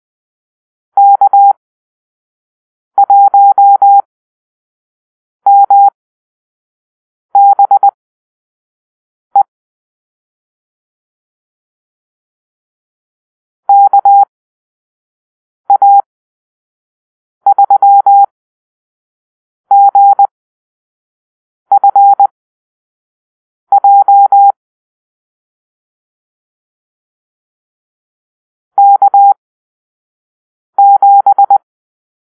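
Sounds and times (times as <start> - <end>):
morse code call-sign beeps: 1.0 - 1.6, 3.1 - 4.0, 5.5 - 6.0, 7.4 - 8.0, 13.7 - 14.3, 15.7 - 16.0, 17.5 - 18.3, 19.7 - 20.3, 21.7 - 22.3, 23.7 - 24.6, 28.8 - 29.4, 30.8 - 31.6.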